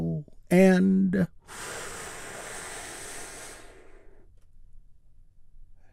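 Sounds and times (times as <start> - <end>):
speech: 0.5 - 1.9
deep breath during a guided breathing exercise: 1.4 - 4.4.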